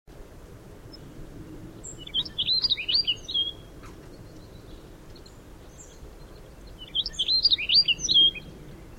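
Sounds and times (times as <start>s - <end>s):
bunting singing: 1.8s - 8.9s.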